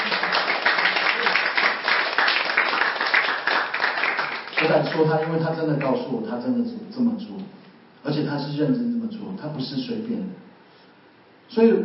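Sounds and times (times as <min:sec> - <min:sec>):
audience clapping: 0:00.0 - 0:06.0
speech: 0:04.6 - 0:10.5, 0:11.5 - 0:11.8.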